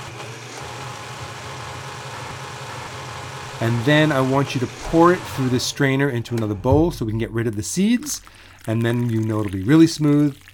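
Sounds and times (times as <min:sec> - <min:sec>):
blender blending whole milk: 0:00.0 - 0:06.6
speech: 0:03.6 - 0:10.4.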